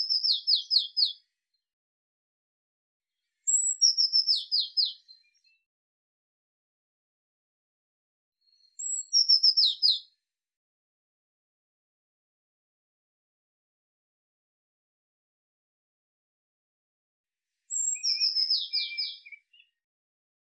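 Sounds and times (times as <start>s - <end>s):
Eurasian blue tit calling: 0.0s - 1.2s, 3.5s - 5.0s, 8.8s - 10.0s, 17.7s - 19.7s.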